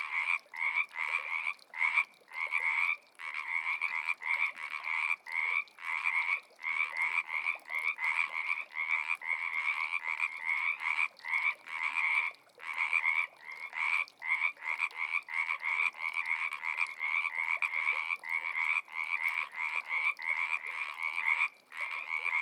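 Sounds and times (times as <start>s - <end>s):
frogs: 0.0s - 22.4s.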